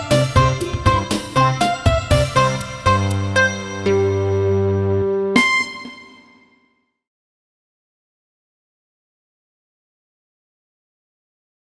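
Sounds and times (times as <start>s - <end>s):
karaoke backing track: 0.0s - 6.2s.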